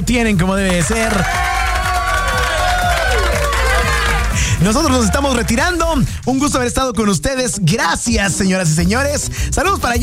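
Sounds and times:
speech: 0.0 - 1.5, 4.6 - 10.0
audience applause: 0.6 - 6.3.

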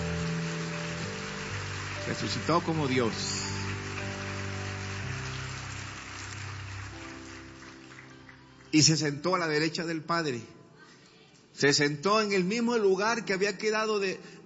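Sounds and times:
audience applauding: 0.0 - 9.1
speech: 2.0 - 3.5, 8.7 - 10.6, 11.6 - 14.4.

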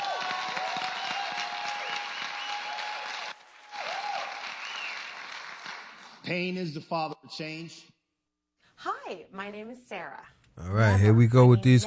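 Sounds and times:
audience clapping: 0.0 - 6.3
speech: 6.3 - 8.0, 8.8 - 11.8.

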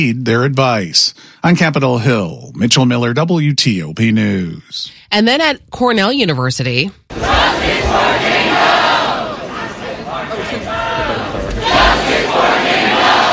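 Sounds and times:
speech: 0.0 - 8.4
protesters shouting slogans: 7.1 - 13.3.

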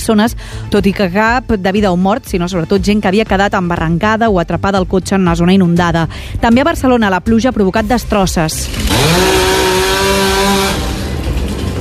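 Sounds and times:
speech: 0.0 - 9.6
chainsaw cutting fallen trees: 8.6 - 11.7.

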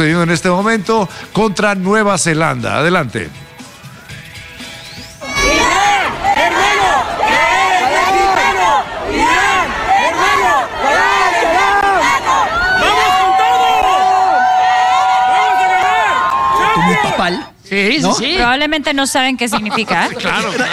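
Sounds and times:
speech: 0.0 - 3.5, 17.7 - 20.7
whistle-like tone: 4.6 - 5.6
crowd chanting in unison: 5.2 - 13.9
cheering and shouts: 5.2 - 17.5
laughter: 16.5 - 17.5, 19.2 - 20.7.

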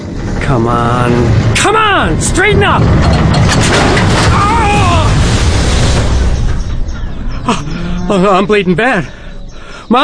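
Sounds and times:
grain elevator tipping over and crashing: 0.0 - 7.2
speech: 0.5 - 4.5, 7.5 - 9.2, 9.9 - 10.0.

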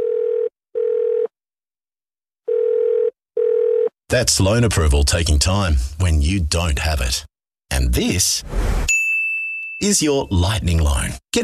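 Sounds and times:
telephone ringback tone while waiting for an answer: 0.0 - 1.3, 2.5 - 3.9
speech: 4.1 - 8.8, 9.8 - 11.4.

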